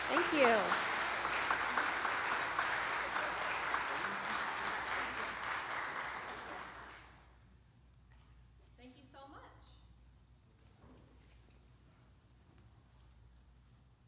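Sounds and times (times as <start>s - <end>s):
audience applause: 0.0s - 7.2s
speech: 0.3s - 0.8s.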